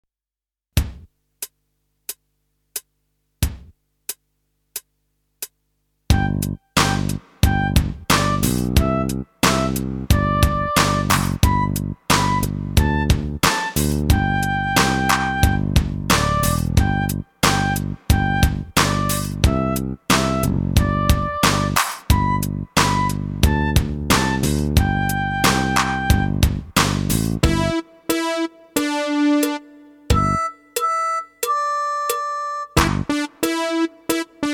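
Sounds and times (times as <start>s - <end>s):
recorder practice: 6.1s - 26.4s, 27.4s - 34.5s.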